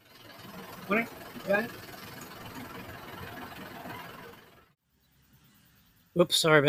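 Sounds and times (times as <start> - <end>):
heavy rubbish truck engine rumbling: 0.0 - 4.8
speech: 0.9 - 1.9, 6.2 - 6.6.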